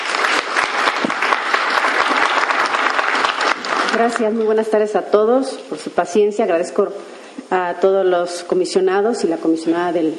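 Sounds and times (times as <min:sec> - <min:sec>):
audience applause: 0:00.0 - 0:04.2
speech: 0:03.9 - 0:10.1.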